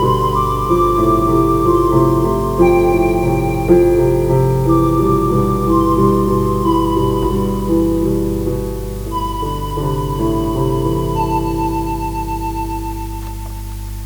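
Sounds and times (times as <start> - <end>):
sad flute melody: 0.0 - 14.0.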